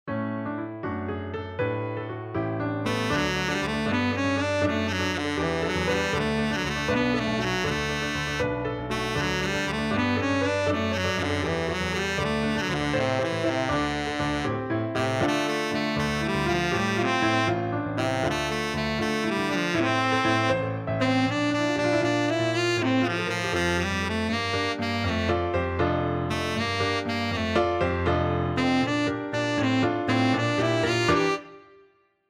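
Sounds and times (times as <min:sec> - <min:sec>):
piano song: 0:00.0 - 0:32.0.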